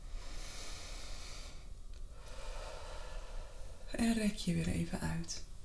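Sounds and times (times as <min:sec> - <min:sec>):
deep breathing in through the nose and out through the mouth: 0:00.0 - 0:03.9
speech: 0:04.0 - 0:05.5.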